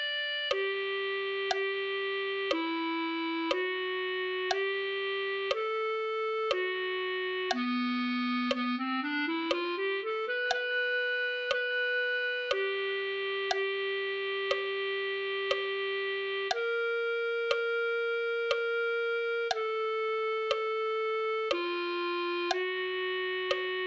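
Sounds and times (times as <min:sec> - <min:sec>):
clarinet: 0:00.0 - 0:23.8.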